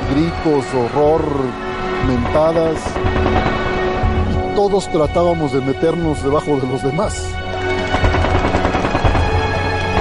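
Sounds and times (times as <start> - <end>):
speech: 0.1 - 3.7, 4.6 - 7.5
machine gun fire: 2.3 - 3.8, 7.7 - 9.9.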